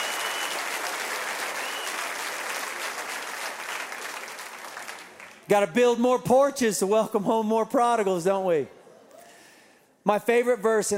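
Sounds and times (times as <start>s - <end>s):
audience cheering: 0.0s - 4.2s
audience applauding: 0.0s - 5.5s
speech: 5.5s - 8.8s, 10.0s - 10.9s.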